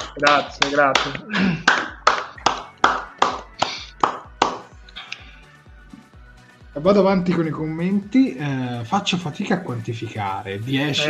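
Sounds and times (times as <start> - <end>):
single pair of hands clapping: 0.0 - 5.3
speech: 0.2 - 1.7, 6.8 - 11.0.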